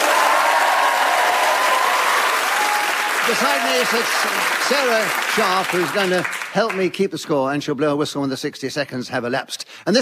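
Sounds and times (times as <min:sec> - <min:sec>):
audience applause: 0:00.0 - 0:07.0
speech: 0:03.3 - 0:10.0.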